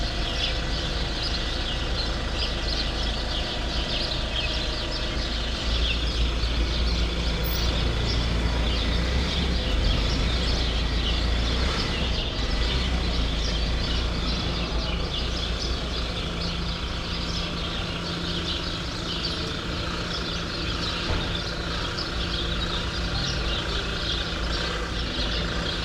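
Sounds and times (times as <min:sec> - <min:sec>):
sparrows chattering in a grove: 0:00.0 - 0:25.8.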